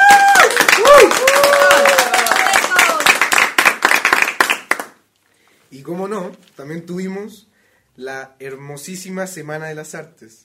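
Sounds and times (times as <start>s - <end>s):
voices cheering: 0.0s - 3.2s
applause: 0.0s - 5.1s
speech: 6.3s - 10.4s.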